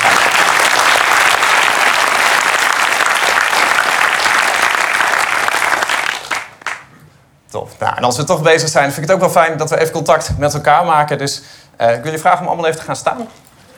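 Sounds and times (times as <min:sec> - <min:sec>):
audience applause: 0:00.0 - 0:06.9
speech: 0:07.8 - 0:13.4.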